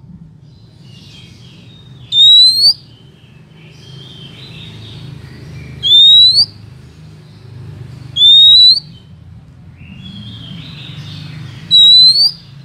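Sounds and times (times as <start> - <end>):
Oriental magpie-robin rising whistle: 2.0 - 2.9, 5.8 - 6.6, 8.2 - 9.0, 11.7 - 12.5.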